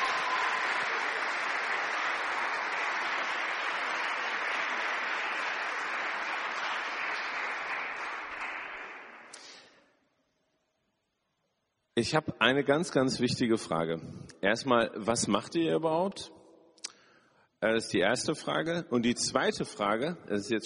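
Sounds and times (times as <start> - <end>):
crowd applause: 0.0 - 9.6
speech: 12.0 - 16.4, 17.6 - 20.6.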